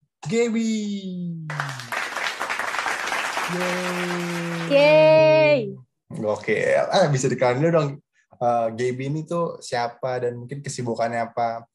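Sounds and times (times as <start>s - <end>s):
speech: 0.3s - 1.7s, 3.5s - 11.7s
enthusiastic applause: 1.5s - 5.4s.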